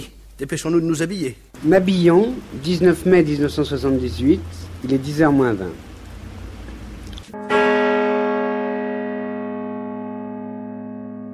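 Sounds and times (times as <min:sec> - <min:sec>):
speech: 0:00.4 - 0:05.9
church bell striking ten o'clock: 0:07.4 - 0:11.3.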